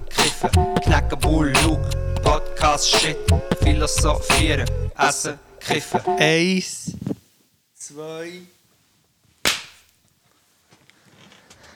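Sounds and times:
speech: 0:00.4 - 0:07.0, 0:07.9 - 0:08.6
hand clap: 0:09.5 - 0:09.8.

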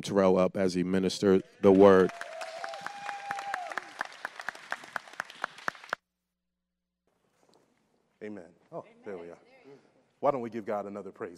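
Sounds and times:
speech: 0:00.0 - 0:02.3, 0:10.2 - 0:11.3
audience applause: 0:01.6 - 0:06.0.

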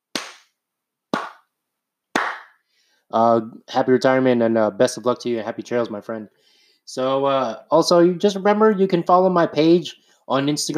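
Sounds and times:
golf clap: 0:00.1 - 0:00.5, 0:01.1 - 0:01.5, 0:02.2 - 0:02.6
speech: 0:03.1 - 0:10.7.

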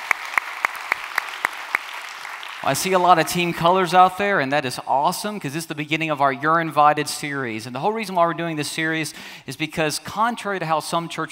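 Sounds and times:
church congregation clapping in welcome: 0:00.0 - 0:03.6
speech: 0:02.6 - 0:11.3.

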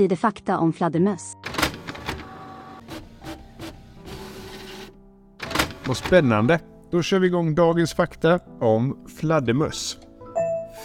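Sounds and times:
speech: 0:00.0 - 0:01.6, 0:05.9 - 0:10.0
printer printing out a page: 0:01.4 - 0:06.2.

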